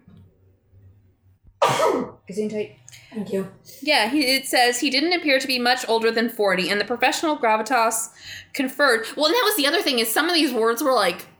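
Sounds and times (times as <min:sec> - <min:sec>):
sneeze: 0:01.6 - 0:02.2
speech: 0:02.0 - 0:11.3.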